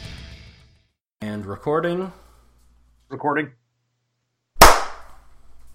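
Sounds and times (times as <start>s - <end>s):
speech: 1.4s - 2.2s, 3.1s - 3.6s
hand claps for audio synchronization: 4.6s - 5.1s.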